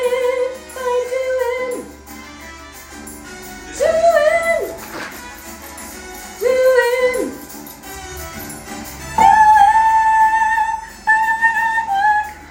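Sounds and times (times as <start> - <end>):
soprano singing: 0.0 - 2.0, 3.7 - 5.1, 6.4 - 7.5, 9.2 - 12.4
melody: 1.7 - 12.4.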